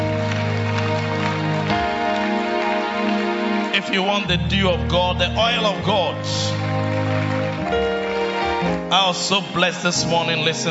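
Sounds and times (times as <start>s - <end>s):
audience clapping: 0.0s - 10.6s
speech: 3.8s - 8.0s, 8.6s - 10.6s.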